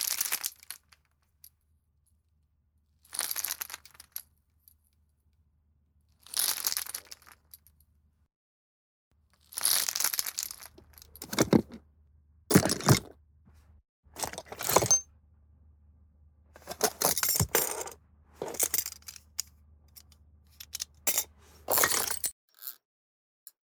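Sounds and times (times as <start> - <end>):
tools: 11.2 - 11.8, 12.5 - 13.1, 14.2 - 15.0, 16.6 - 22.8.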